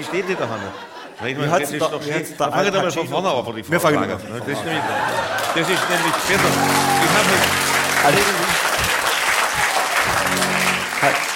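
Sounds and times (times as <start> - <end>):
laughter: 0.0 - 1.8, 4.2 - 11.3
speech: 0.0 - 8.4, 11.0 - 11.2
audience clapping during a live rap performance: 5.1 - 11.3.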